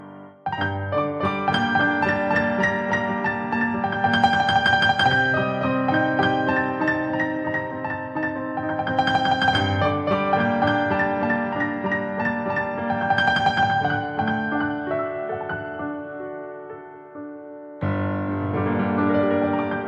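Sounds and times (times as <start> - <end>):
piano: 0.0 - 19.8.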